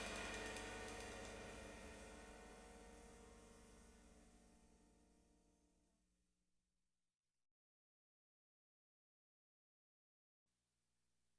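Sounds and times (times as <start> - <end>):
backing track: 0.0 - 3.9.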